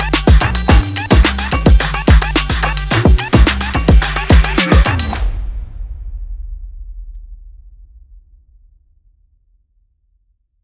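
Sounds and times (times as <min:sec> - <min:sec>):
people clapping: 0:00.0 - 0:05.2.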